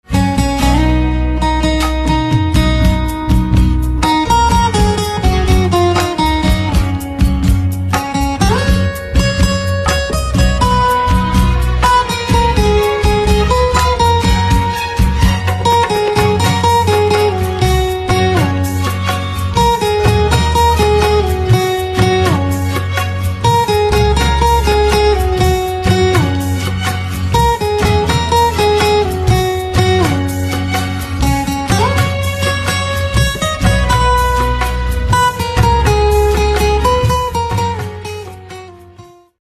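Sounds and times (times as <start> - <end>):
guitar: 0.0 - 39.4.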